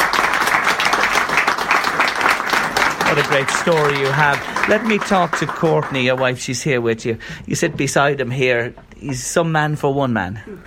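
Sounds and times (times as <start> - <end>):
crowd applauding: 0.0 - 6.6
speech: 3.2 - 10.6.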